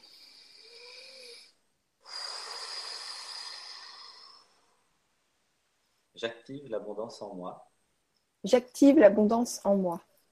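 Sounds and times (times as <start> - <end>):
deep breath during a guided affirmation exercise: 0.0 - 5.0
speech: 6.2 - 7.7, 8.4 - 10.1.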